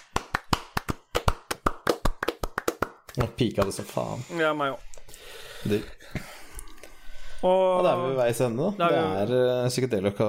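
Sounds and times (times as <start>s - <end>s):
small round of applause: 0.0s - 3.8s
speech: 3.2s - 6.3s, 7.4s - 10.2s.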